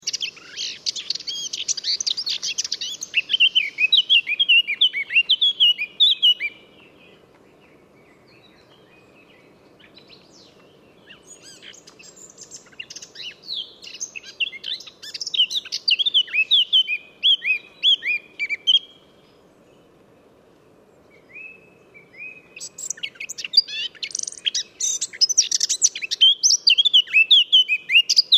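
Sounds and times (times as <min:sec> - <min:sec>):
Eurasian blackcap warbling song: 0:00.0 - 0:19.3, 0:21.1 - 0:28.3.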